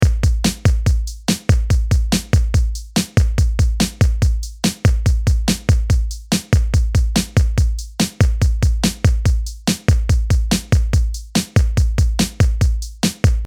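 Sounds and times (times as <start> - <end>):
drum: 0.0 - 13.4.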